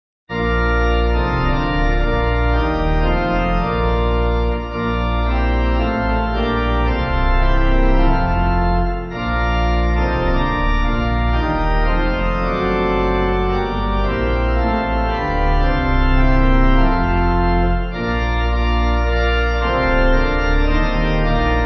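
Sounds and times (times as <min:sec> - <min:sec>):
church pipe organ backing music: 0:00.3 - 0:21.6.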